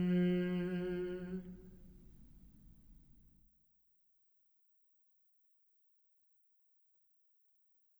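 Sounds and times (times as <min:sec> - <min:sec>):
polyphonic Italian songs: 0:00.0 - 0:01.9.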